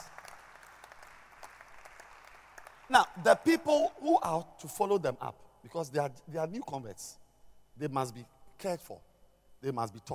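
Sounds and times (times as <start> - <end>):
crowd clapping hands: 0.0 - 3.5
speech: 2.9 - 7.2, 7.8 - 10.1.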